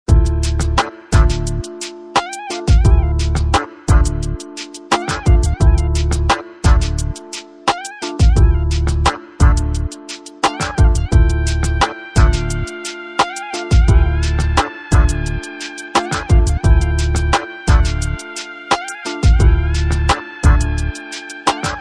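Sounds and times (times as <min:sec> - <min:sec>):
jazz ringtone: 0:00.1 - 0:21.7.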